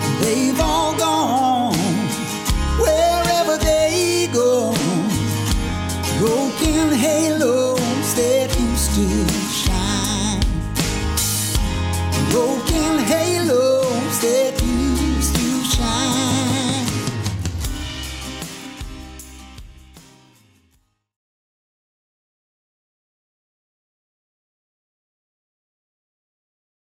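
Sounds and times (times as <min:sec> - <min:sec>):
country music: 0:00.0 - 0:20.7.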